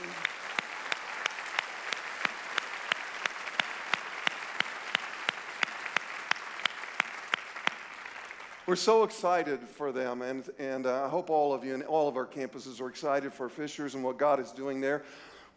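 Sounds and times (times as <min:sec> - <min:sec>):
church congregation clapping in an even rhythmic beat: 0:00.0 - 0:09.0
speech: 0:08.7 - 0:15.5.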